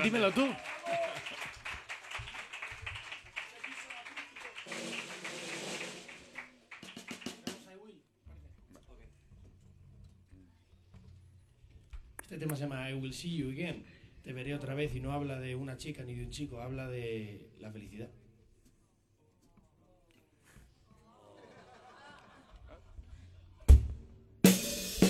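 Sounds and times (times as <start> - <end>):
speech: 0.0 - 0.7, 12.3 - 18.2
audience applause: 0.0 - 7.6
laughter: 21.0 - 23.7.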